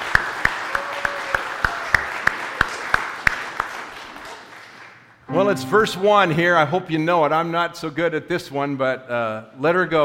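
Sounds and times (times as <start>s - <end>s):
round of applause: 0.0s - 5.2s
speech: 5.4s - 10.0s.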